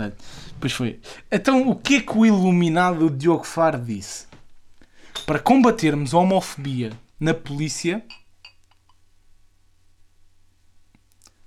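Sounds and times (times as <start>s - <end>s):
speech: 0.0s - 4.3s, 5.2s - 8.2s
low steady hum: 0.0s - 11.4s
whisky glass clinking: 5.1s - 5.5s, 8.0s - 8.9s.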